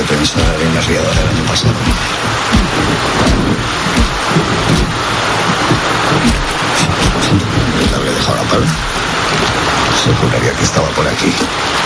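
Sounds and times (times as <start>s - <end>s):
rain falling: 0.0s - 11.8s
speech: 0.2s - 4.7s, 8.0s - 11.8s.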